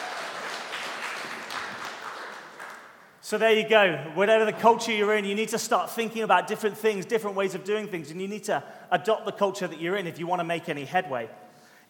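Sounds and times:
audience round of applause: 0:00.0 - 0:03.2
speech: 0:03.3 - 0:11.8.

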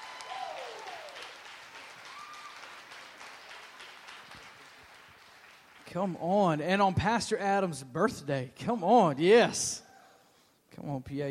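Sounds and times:
audience applause: 0:00.0 - 0:05.9
speech: 0:05.9 - 0:09.8, 0:10.8 - 0:11.2.

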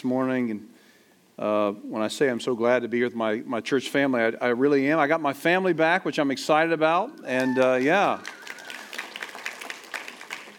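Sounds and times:
speech: 0:00.0 - 0:00.8, 0:01.4 - 0:08.4
scattered clapping from a church congregation during a service: 0:07.3 - 0:10.5.

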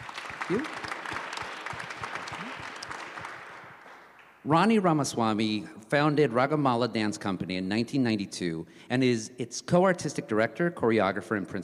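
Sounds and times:
audience applause: 0:00.0 - 0:04.4
speech: 0:00.5 - 0:00.9, 0:04.4 - 0:11.6.

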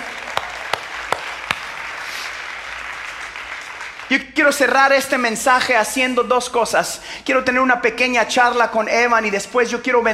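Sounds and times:
audience applauding: 0:00.0 - 0:04.2
speech: 0:04.1 - 0:10.1.

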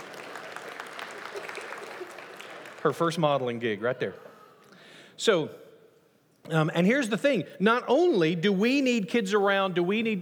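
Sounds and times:
audience clapping: 0:00.0 - 0:03.8
speech: 0:02.8 - 0:04.3, 0:05.2 - 0:05.6, 0:06.5 - 0:10.2.

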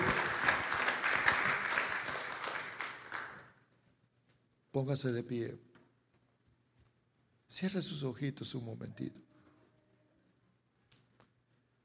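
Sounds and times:
audience applause: 0:00.0 - 0:03.5
speech: 0:04.8 - 0:05.7, 0:07.5 - 0:09.3.

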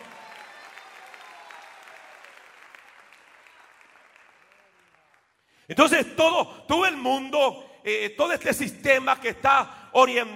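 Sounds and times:
audience applauding: 0:00.0 - 0:05.5
speech: 0:05.7 - 0:10.3.

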